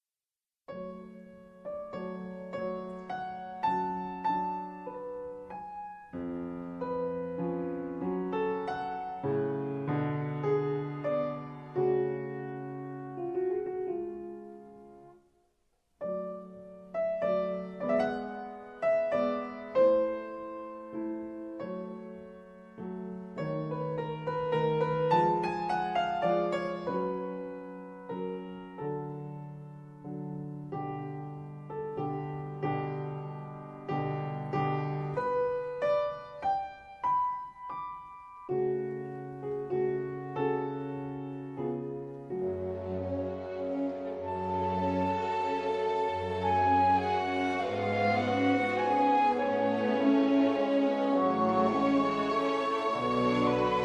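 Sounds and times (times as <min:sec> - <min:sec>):
piano concerto: 0:00.7 - 0:15.4, 0:16.0 - 0:53.8.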